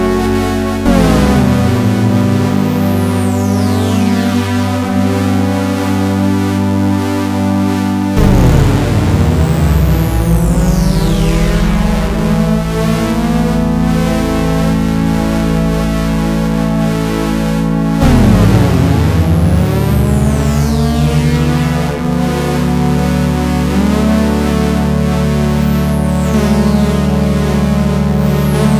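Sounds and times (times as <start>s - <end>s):
polyphonic synthesizer portamento: 0.0s - 28.7s.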